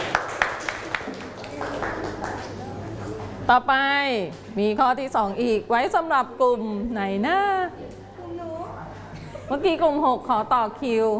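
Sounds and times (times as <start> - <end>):
classroom applause for a student group: 0.0 - 3.0
speech: 3.5 - 7.8, 9.5 - 11.1.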